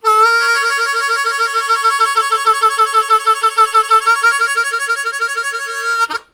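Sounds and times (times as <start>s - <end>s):
harmonica riffs: 0.0s - 6.3s.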